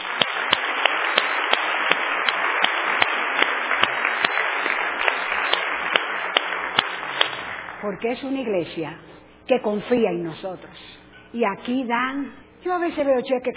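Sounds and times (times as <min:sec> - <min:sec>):
audience applauding: 0:00.0 - 0:08.0
speech: 0:07.8 - 0:13.5.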